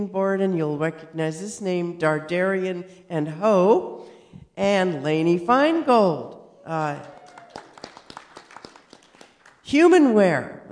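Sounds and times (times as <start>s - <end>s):
speech: 0.0s - 7.1s, 9.7s - 10.7s
clapping: 7.0s - 9.7s.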